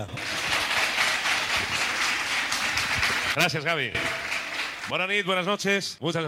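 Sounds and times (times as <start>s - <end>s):
audience applause: 0.0s - 5.0s
speech: 3.4s - 4.2s, 4.9s - 6.2s.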